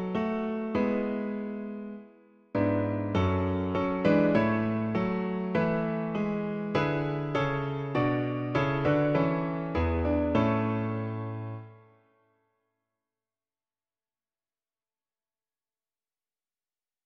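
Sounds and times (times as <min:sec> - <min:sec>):
piano: 0:00.0 - 0:12.3.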